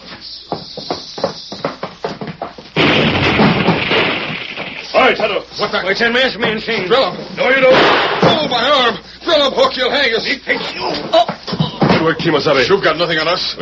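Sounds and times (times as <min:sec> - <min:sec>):
explosion blowing up a safe: 0:02.8 - 0:05.0
speech: 0:05.1 - 0:11.4, 0:12.0 - 0:13.5.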